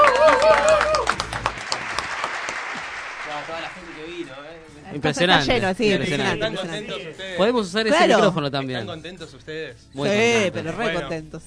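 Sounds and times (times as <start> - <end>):
audience applause: 0.0 - 4.6
speech: 5.0 - 11.4.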